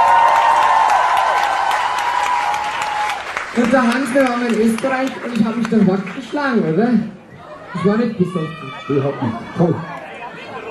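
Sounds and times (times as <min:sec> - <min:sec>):
audience applause: 0:00.0 - 0:06.6
speech: 0:03.6 - 0:07.1, 0:07.7 - 0:09.9.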